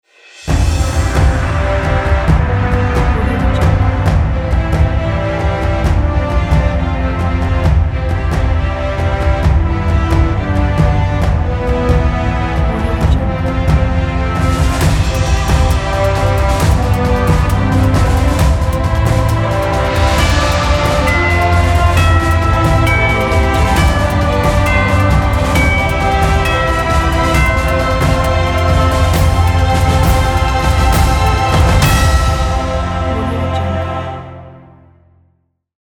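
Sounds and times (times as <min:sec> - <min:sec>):
triumphant commercial music: 0:00.3 - 0:34.9.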